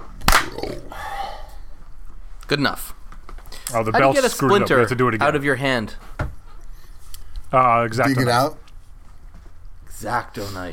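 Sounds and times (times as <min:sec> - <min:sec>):
hand clap: 0:00.2 - 0:00.6
speech: 0:02.5 - 0:03.0, 0:03.7 - 0:06.3, 0:07.5 - 0:08.6, 0:10.0 - 0:10.7.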